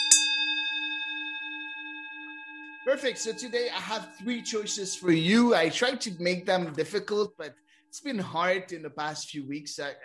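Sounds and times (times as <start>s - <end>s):
bell ringing: 0.0s - 7.4s
speech: 2.8s - 10.0s.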